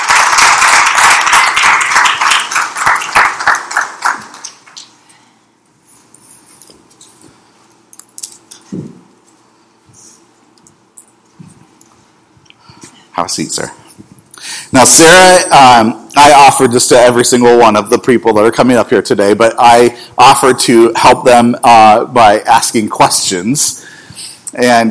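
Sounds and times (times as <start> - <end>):
audience applause welcoming a speaker to the stage: 0.0 - 4.9
speech: 13.2 - 13.8, 14.7 - 23.9, 24.5 - 24.8.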